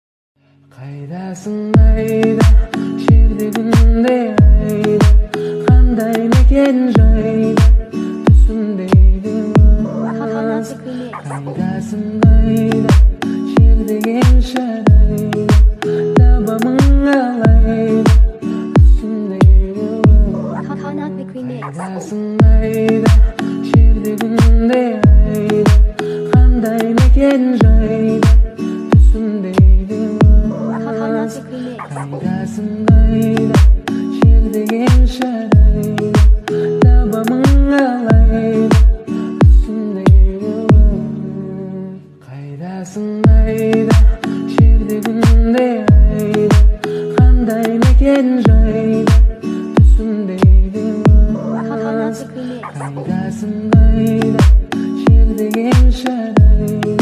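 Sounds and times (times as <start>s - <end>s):
bass boosted remix music: 1.8s - 9.8s, 12.2s - 20.3s, 21.6s - 30.5s, 32.9s - 41.0s, 43.3s - 51.3s, 53.8s - 57.0s.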